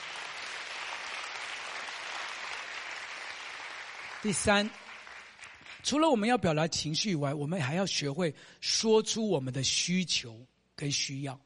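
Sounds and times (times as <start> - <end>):
audience clapping: 0.0 - 6.1
speech: 4.2 - 4.8, 5.8 - 11.4.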